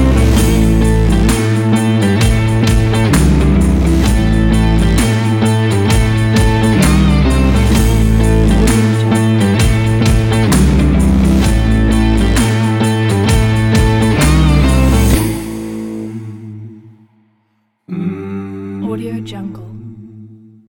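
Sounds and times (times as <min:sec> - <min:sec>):
rock beat: 0:00.0 - 0:16.2.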